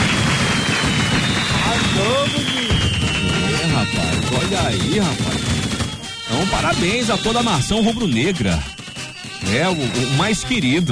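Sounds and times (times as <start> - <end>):
clapping: 0.0 - 5.4
thin whistle-like tone: 0.4 - 5.4, 6.0 - 10.9
speech: 4.6 - 5.6, 6.3 - 8.8, 9.4 - 10.9.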